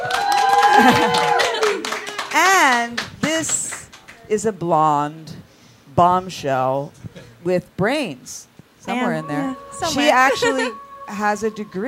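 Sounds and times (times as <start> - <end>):
applause: 0.0 - 4.2
speech: 0.8 - 1.2, 4.3 - 5.4, 6.0 - 11.8.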